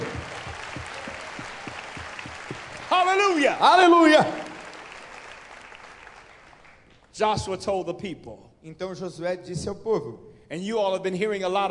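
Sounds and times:
audience applauding: 0.0s - 7.1s
speech: 3.0s - 4.4s, 7.2s - 11.6s.

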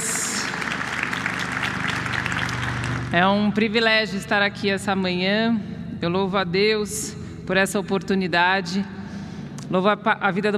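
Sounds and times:
audience applause: 0.0s - 3.2s
speech: 3.1s - 9.0s, 9.7s - 10.5s.

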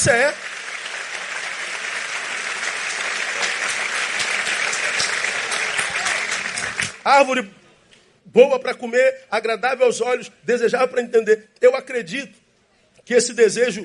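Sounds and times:
speech: 0.0s - 0.5s, 7.1s - 7.6s, 8.2s - 12.4s, 13.0s - 13.8s
audience applauding: 0.0s - 7.0s.

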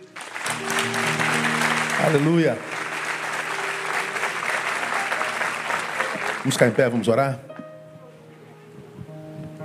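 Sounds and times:
audience applauding: 0.0s - 7.2s
speech: 2.0s - 2.7s, 6.4s - 7.5s.

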